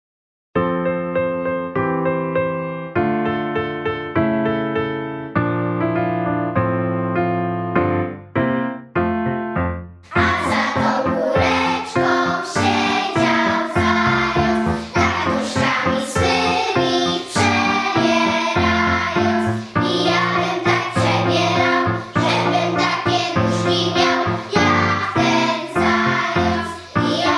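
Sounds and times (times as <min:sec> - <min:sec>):
piano: 0:00.6 - 0:27.3
children singing: 0:10.1 - 0:27.3.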